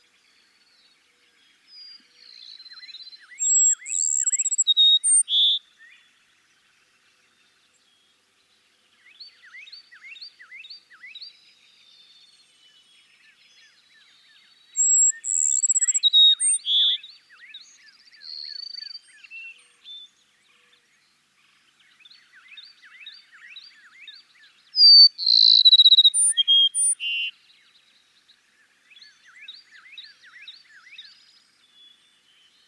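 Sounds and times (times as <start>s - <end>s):
Cassin's sparrow singing: 3.3s - 5.6s, 14.8s - 17.0s, 24.8s - 27.3s
other birds chirping: 3.4s - 5.6s, 14.8s - 17.0s, 24.8s - 27.3s.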